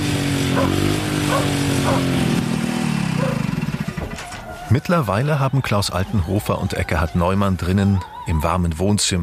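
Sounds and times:
old motorcycle engine idling: 0.1s - 4.7s
speech: 0.7s - 2.5s, 4.7s - 9.2s.

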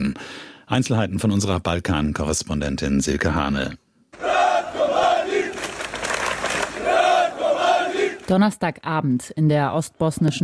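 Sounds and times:
speech: 0.0s - 3.8s, 8.3s - 10.4s
crowd of hundreds of protesters chanting a name: 4.2s - 8.4s.

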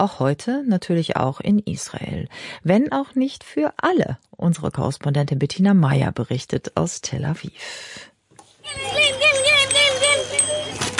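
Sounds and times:
speech: 0.0s - 8.1s
children on bicycles ringing bells in Herzliya: 8.7s - 10.9s.

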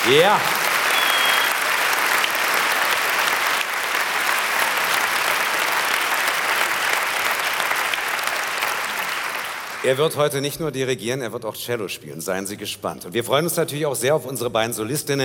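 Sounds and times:
audience applause for an orchestra: 0.0s - 10.0s
speech: 0.1s - 0.6s, 9.8s - 15.2s.

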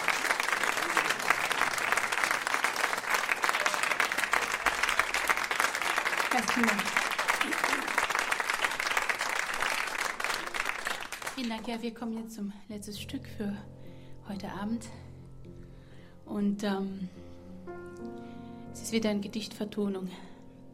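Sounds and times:
sustained audience applause: 0.0s - 11.7s
speech: 6.4s - 7.8s, 11.4s - 15.0s, 16.3s - 17.2s, 18.8s - 20.3s.

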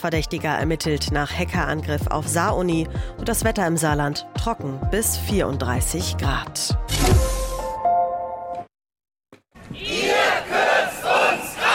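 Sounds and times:
speech: 0.0s - 7.4s
demonstrators chanting rhythmically outside the Bundestag: 9.7s - 11.7s.

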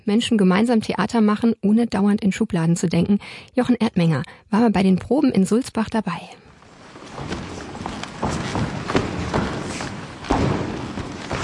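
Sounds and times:
speech: 0.0s - 6.4s
ensemble striding and stamping across creaking wooden floor of the Aula in Sulzbach: 6.6s - 11.4s.

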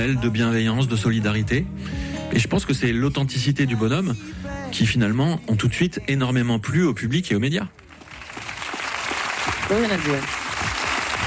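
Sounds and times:
speech: 0.0s - 7.8s, 9.7s - 10.4s
applause: 7.8s - 11.2s.

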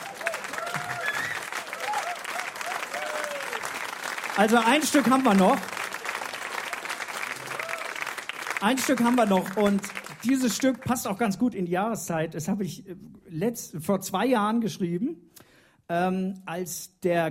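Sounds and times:
audience clapping: 0.0s - 11.4s
speech: 4.4s - 5.7s, 8.6s - 15.2s, 15.9s - 17.2s.

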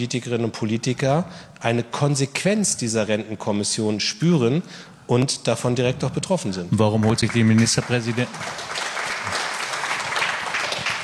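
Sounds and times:
speech: 0.0s - 9.4s
audience applause: 7.0s - 11.0s.

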